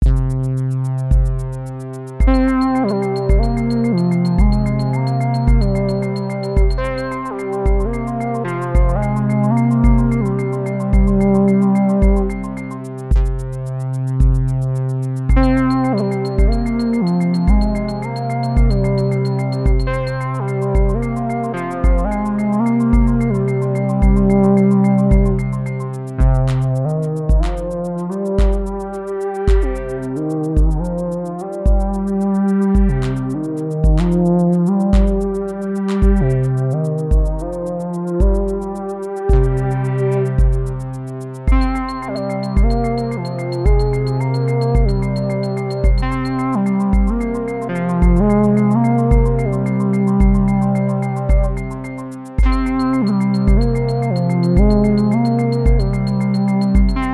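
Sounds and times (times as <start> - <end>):
synth: 0.0 - 57.1.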